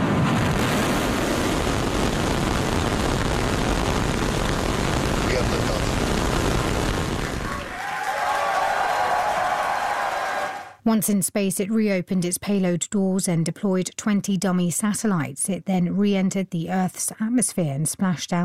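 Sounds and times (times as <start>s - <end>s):
Starship rocket engines roaring at liftoff: 0.0s - 7.8s
SpaceX employees cheering: 7.2s - 10.8s
speech: 10.9s - 18.4s.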